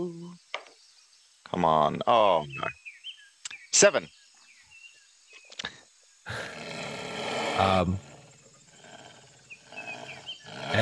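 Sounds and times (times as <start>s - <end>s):
speech: 1.5s - 2.8s, 3.7s - 4.2s, 7.6s - 8.1s
wounded animal growling: 6.3s - 10.7s.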